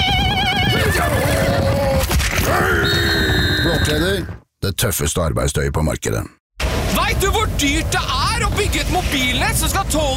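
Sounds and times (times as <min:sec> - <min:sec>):
horse whinnying and snorting: 0:00.3 - 0:04.1
speech: 0:03.9 - 0:06.4, 0:07.0 - 0:10.1.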